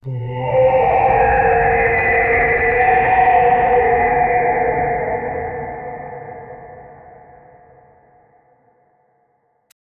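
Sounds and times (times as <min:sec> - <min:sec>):
scary monster: 0:00.0 - 0:08.0.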